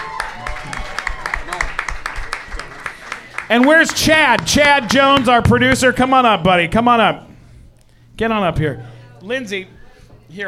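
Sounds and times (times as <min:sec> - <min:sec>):
audience applause: 0:00.0 - 0:05.3
speech: 0:03.5 - 0:07.3, 0:08.2 - 0:10.4.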